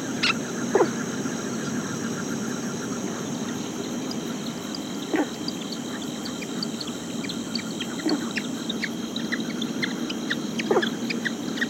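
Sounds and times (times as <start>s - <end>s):
Taipei frog Hylarana taipehensis calling: 0.0s - 11.6s.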